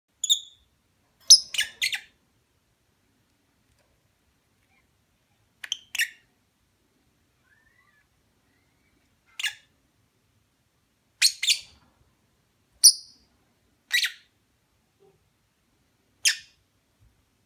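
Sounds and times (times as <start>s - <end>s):
lovebird chirping mating call: 0.2s - 0.7s, 1.3s - 2.2s, 5.6s - 6.3s, 7.4s - 9.7s, 11.2s - 11.8s, 12.8s - 13.3s, 13.9s - 14.3s, 16.2s - 16.6s.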